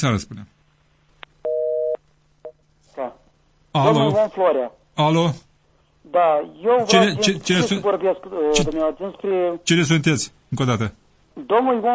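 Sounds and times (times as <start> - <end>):
speech: 0.0 - 0.6, 3.7 - 11.9
telephone line tone during incoming call: 1.4 - 2.0.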